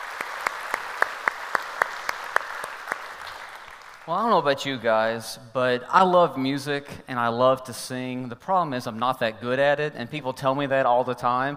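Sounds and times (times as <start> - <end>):
church congregation applauding during a service: 0.0 - 4.3
speech: 4.1 - 11.5.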